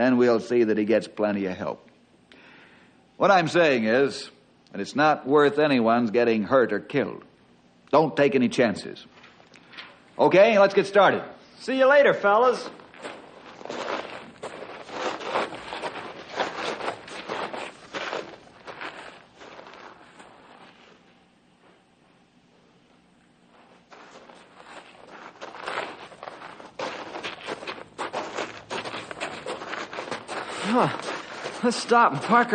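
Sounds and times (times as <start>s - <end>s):
speech: 0.0s - 1.9s, 3.2s - 7.3s, 7.9s - 9.2s, 10.2s - 13.8s, 31.7s - 32.5s
footsteps of people walking: 12.5s - 22.2s, 23.3s - 32.5s.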